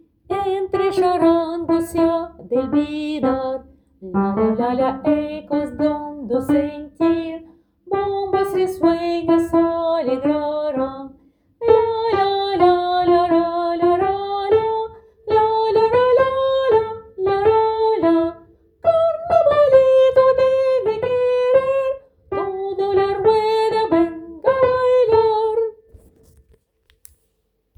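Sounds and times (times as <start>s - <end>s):
soprano melody: 0.4s - 25.7s.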